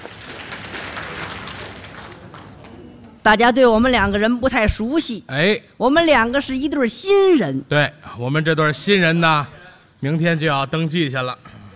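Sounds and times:
audience applause: 0:00.0 - 0:03.2
speech: 0:03.2 - 0:11.6.

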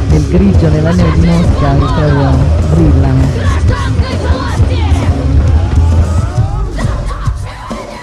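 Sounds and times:
speech: 0:00.2 - 0:04.8
group of about 20 people shouting and yelling on a rooftop at Red Square in snowy Moscow: 0:03.3 - 0:07.3.

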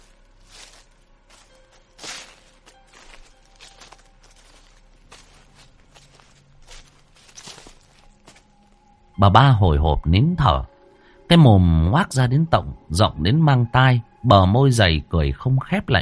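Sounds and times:
soft footsteps behind the house: 0:00.0 - 0:08.9
speech: 0:09.2 - 0:10.7, 0:11.3 - 0:15.9.

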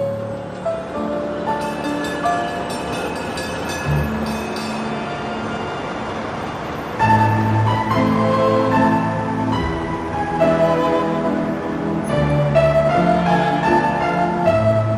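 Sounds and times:
tram rumbling along its rails: 0:00.0 - 0:14.9
tram clanks: 0:01.5 - 0:05.0
tram squealing metallic overtones: 0:01.5 - 0:08.0.

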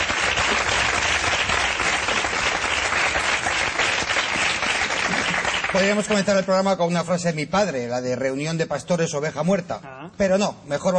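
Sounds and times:
audience applause: 0:00.0 - 0:06.5
speech: 0:05.8 - 0:10.9.

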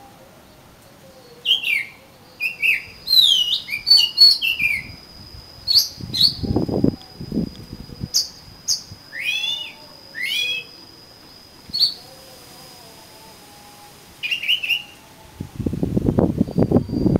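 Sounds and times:
lower noisy rustling: 0:00.0 - 0:17.1
steady high tone: 0:00.0 - 0:17.1
oriental magpie-robin singing: 0:01.1 - 0:05.0, 0:05.6 - 0:06.6, 0:08.0 - 0:12.0, 0:14.2 - 0:15.0.

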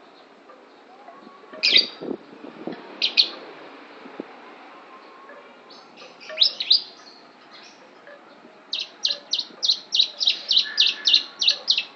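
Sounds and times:
lovebird imitating the song of the Javan prinia: 0:01.5 - 0:02.0, 0:03.0 - 0:03.4, 0:05.7 - 0:11.9.

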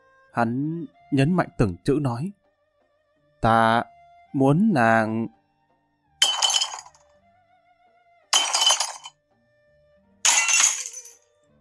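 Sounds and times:
speech: 0:00.4 - 0:02.4, 0:03.4 - 0:05.4
ceramic teapots smashing on a hard floor: 0:06.2 - 0:07.0, 0:08.4 - 0:09.1, 0:10.3 - 0:11.2.

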